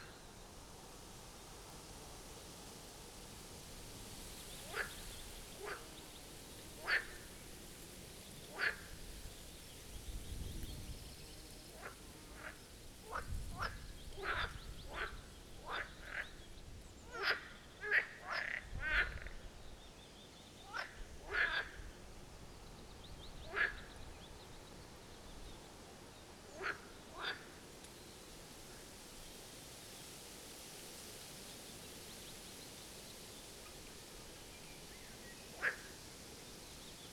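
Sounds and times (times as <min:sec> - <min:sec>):
background hiss: 0:00.0 - 0:37.1
marsh frogs croaking: 0:04.6 - 0:07.5, 0:08.2 - 0:09.4, 0:11.7 - 0:16.4, 0:17.0 - 0:19.6, 0:20.6 - 0:22.0, 0:23.3 - 0:24.2, 0:26.4 - 0:27.7, 0:35.5 - 0:36.1.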